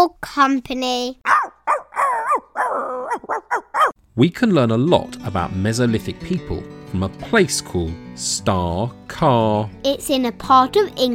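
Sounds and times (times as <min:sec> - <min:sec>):
speech: 0:00.0 - 0:01.8, 0:02.6 - 0:11.1
dog barking: 0:01.3 - 0:04.0.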